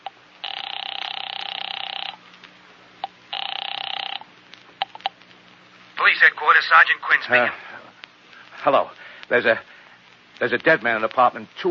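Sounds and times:
telephone ringing over the line from an outside phone booth: 0:00.4 - 0:02.2, 0:03.3 - 0:04.3
speech: 0:06.1 - 0:07.6, 0:08.6 - 0:09.7, 0:10.4 - 0:11.6.

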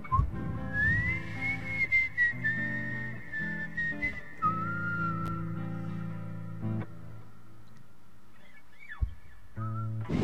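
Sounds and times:
person blowing into the microphone: 0:00.1 - 0:06.8, 0:09.6 - 0:10.2
person whistling into the microphone: 0:00.1 - 0:06.8, 0:09.6 - 0:10.1.

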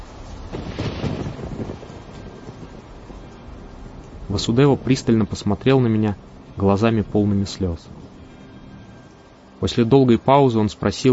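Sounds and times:
thunder: 0:00.0 - 0:05.8
heavy rain: 0:00.0 - 0:11.1
hurricane wind lashing trees: 0:00.0 - 0:11.1
speech: 0:04.4 - 0:08.0, 0:09.6 - 0:11.1.

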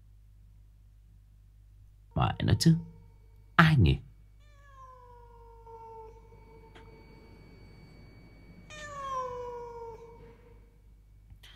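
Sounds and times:
speech: 0:02.2 - 0:02.9, 0:03.6 - 0:04.1
cat meowing mournfully: 0:04.4 - 0:10.8.

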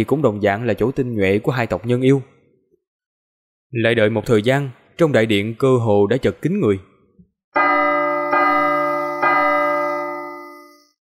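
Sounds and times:
speech: 0:00.0 - 0:02.3, 0:03.7 - 0:06.9
melodious bell chimes: 0:07.6 - 0:11.0.

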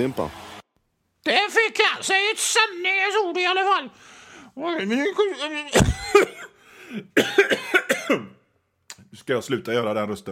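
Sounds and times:
speech: 0:00.0 - 0:00.4, 0:01.2 - 0:06.3, 0:06.9 - 0:08.4, 0:09.3 - 0:10.2
coughing fit: 0:05.6 - 0:08.5.

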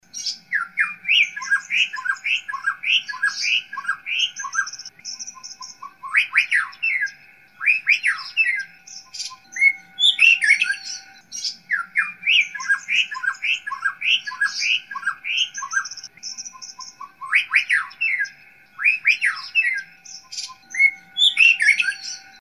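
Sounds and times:
White-rumped shama singing whistled notes: 0:00.0 - 0:22.3.

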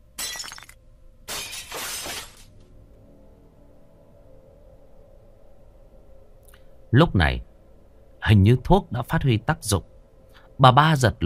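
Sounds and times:
bowl of medicine shattering on the floor: 0:00.2 - 0:02.4
speech: 0:06.9 - 0:07.5, 0:08.3 - 0:09.9, 0:10.6 - 0:11.2.

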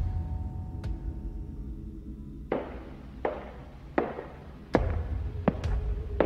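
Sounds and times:
low hum: 0:00.0 - 0:06.2
firm thudding footsteps at walking pace: 0:02.5 - 0:06.2.

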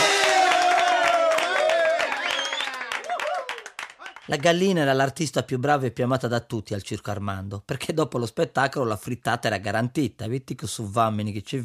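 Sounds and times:
audience applause: 0:00.0 - 0:04.6
speech: 0:04.3 - 0:11.6.

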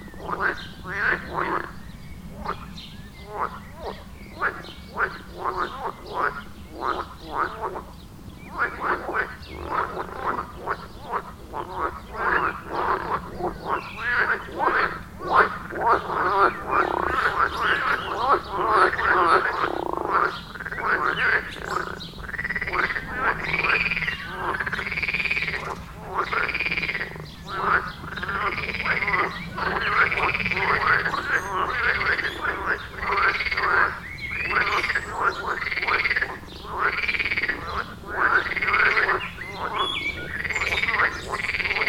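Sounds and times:
frogs croaking in a chorus: 0:00.0 - 0:41.8.

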